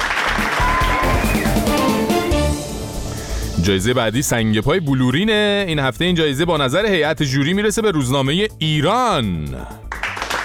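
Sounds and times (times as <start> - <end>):
crowd applauding: 0.0 - 2.3, 9.8 - 10.4
speech: 3.6 - 9.8.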